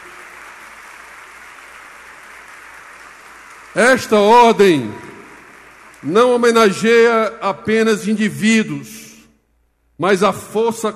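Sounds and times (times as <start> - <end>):
applause for award honorees: 0.0 - 6.1
speech: 3.8 - 5.0, 6.0 - 9.0, 10.0 - 10.9.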